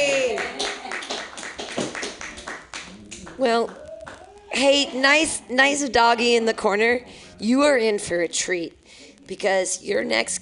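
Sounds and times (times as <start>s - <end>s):
audience clapping: 0.0s - 4.4s
speech: 3.4s - 3.8s, 4.6s - 10.4s.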